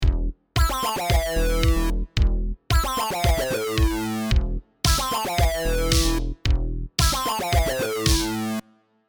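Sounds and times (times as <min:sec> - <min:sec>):
synth: 0:00.6 - 0:02.1, 0:02.7 - 0:08.8.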